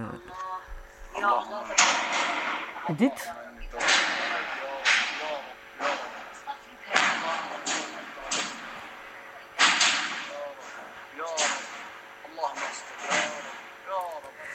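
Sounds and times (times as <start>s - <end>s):
speech: 1.2s - 3.4s
gunfire from street fighting in Aleppo: 1.7s - 2.9s, 3.8s - 6.3s, 6.9s - 9.0s, 9.6s - 13.7s.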